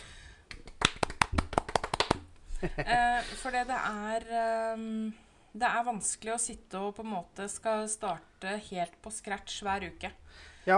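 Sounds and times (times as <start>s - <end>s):
hands clapping: 0.5s - 2.3s
laughter: 2.6s - 3.1s
speech: 2.6s - 10.7s.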